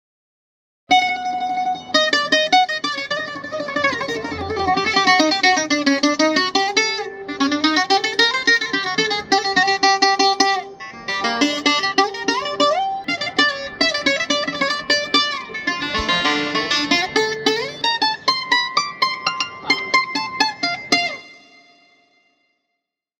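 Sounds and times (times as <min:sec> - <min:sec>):
bouzouki: 0:00.9 - 0:22.3.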